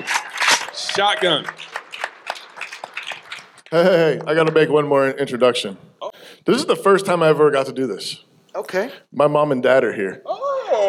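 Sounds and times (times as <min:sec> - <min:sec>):
scattered applause from a small group: 0:00.0 - 0:03.8
speech: 0:01.0 - 0:01.7, 0:03.7 - 0:10.3.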